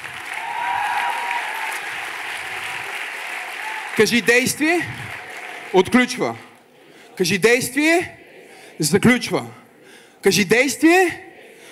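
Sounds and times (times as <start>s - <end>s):
audience applause: 0.0s - 6.0s
speech: 4.0s - 5.1s, 5.7s - 6.5s, 7.2s - 8.2s, 8.8s - 9.6s, 10.2s - 11.3s.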